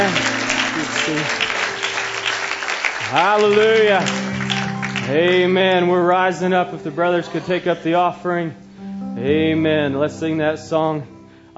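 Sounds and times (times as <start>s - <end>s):
audience hand clapping: 0.0s - 5.6s
speech: 1.1s - 1.4s, 3.1s - 4.4s, 5.0s - 8.6s, 9.2s - 11.5s.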